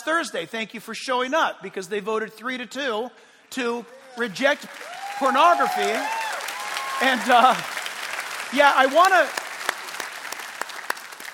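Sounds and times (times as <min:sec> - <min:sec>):
speech: 0:00.0 - 0:06.2, 0:07.0 - 0:07.8, 0:08.5 - 0:09.4
scattered applause from a community audience: 0:03.9 - 0:11.3.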